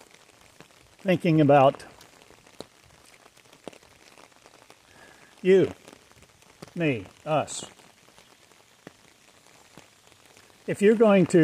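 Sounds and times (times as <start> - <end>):
rain falling in Eureka Springs, Arkansas: 0.0 - 11.4
speech: 1.0 - 1.9, 5.4 - 5.8, 6.8 - 7.8, 10.7 - 11.4.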